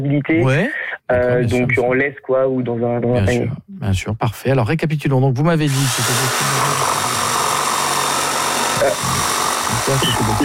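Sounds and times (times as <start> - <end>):
speech: 0.0 - 7.0, 8.8 - 10.4
construction work with power tools grinding: 5.7 - 10.4.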